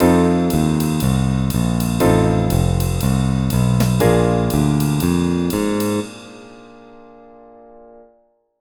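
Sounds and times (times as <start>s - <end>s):
drum template pattern: 0.0s - 6.4s.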